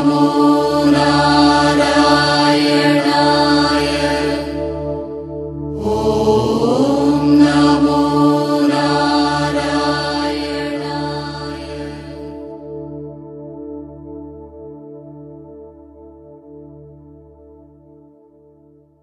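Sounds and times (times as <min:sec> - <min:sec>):
devotional chanting: 0:00.0 - 0:12.9.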